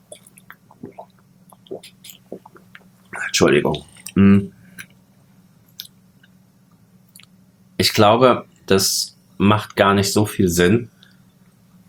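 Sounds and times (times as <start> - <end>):
mouth clicks: 0.0 - 3.0
person sipping a drink: 0.0 - 3.2
person swallowing: 0.0 - 5.0
speech: 3.3 - 4.6, 8.0 - 11.0.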